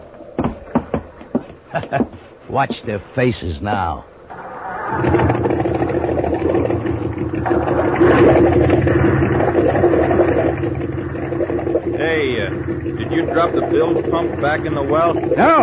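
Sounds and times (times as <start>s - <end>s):
speech: 1.7s - 4.1s, 4.9s - 5.5s, 7.5s - 8.8s, 12.0s - 15.6s
boat engine running under way: 4.2s - 15.6s
rushing water: 5.0s - 15.6s.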